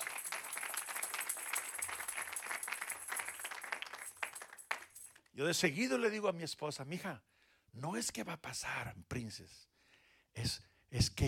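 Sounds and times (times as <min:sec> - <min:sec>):
audience applauding: 0:00.0 - 0:05.1
speech: 0:05.4 - 0:09.7, 0:10.4 - 0:11.2.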